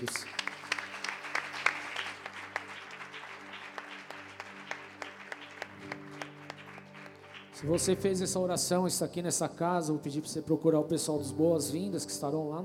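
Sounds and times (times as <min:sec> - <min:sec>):
speech: 0:00.0 - 0:00.4, 0:07.6 - 0:12.6
large crowd clapping: 0:00.0 - 0:08.4.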